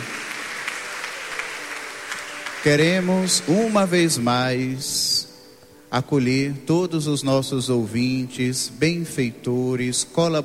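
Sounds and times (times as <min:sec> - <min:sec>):
congregation applauding at a Mass: 0:00.0 - 0:04.5
speech: 0:02.6 - 0:05.3, 0:05.9 - 0:10.4.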